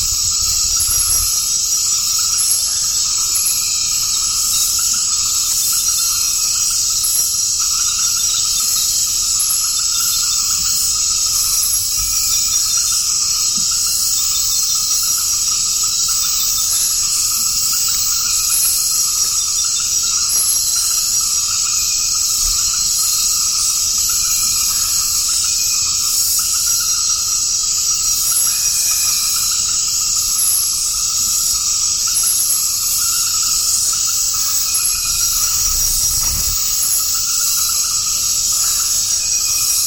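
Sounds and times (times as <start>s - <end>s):
forest swamp ambience: 0.0s - 39.8s.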